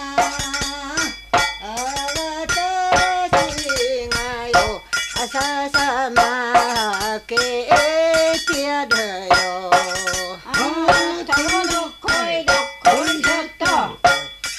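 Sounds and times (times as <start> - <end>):
person singing sumo jinku folk song in Sanmu: 0.0 - 14.3.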